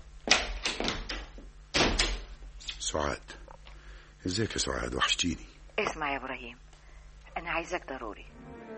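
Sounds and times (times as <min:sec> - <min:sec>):
door being closed: 0:00.3 - 0:02.4
speech: 0:02.9 - 0:03.4, 0:04.2 - 0:06.7, 0:07.4 - 0:08.3.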